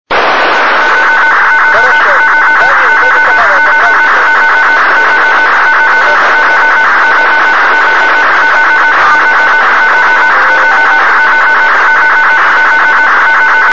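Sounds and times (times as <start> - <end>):
strange signal: 0.1 - 13.7.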